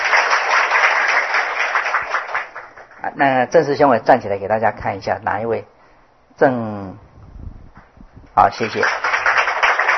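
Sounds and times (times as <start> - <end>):
audience applause: 0.0 - 3.0, 8.6 - 9.9
speech: 3.2 - 5.7, 6.4 - 7.1, 8.4 - 9.1.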